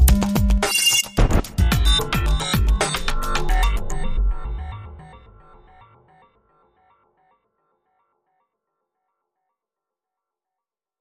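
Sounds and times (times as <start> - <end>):
soundscape: 0.1 - 6.3.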